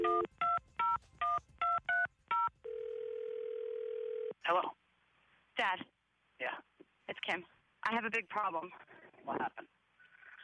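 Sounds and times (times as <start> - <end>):
steady phone line tone: 0.0 - 0.9, 1.8 - 4.4
phone number keyed in as touch-tone beeps: 0.0 - 4.3
speech: 7.3 - 9.7.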